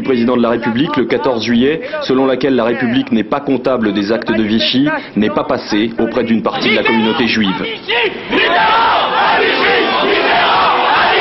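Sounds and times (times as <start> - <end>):
speech: 0.0 - 10.1
angry crowd shouting and jeering: 6.5 - 11.1.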